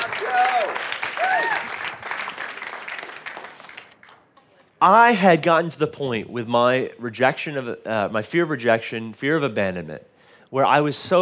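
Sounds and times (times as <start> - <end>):
audience applause: 0.0 - 4.3
speech: 4.8 - 11.1.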